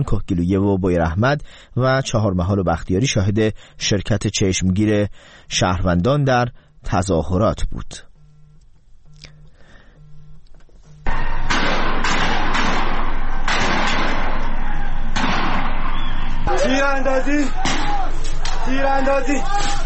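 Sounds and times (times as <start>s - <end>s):
speech: 0.0s - 8.1s, 16.6s - 17.7s, 18.6s - 19.8s
gunshots during street protest: 11.1s - 18.6s.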